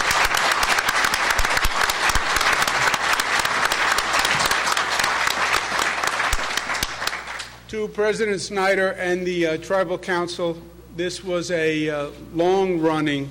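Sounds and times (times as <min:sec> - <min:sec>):
crowd applauding: 0:00.0 - 0:07.6
speech: 0:07.8 - 0:13.2.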